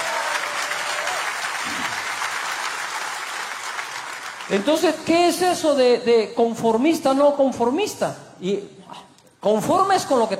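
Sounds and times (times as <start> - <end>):
crowd applause: 0.0 - 4.8
speech: 4.5 - 10.3.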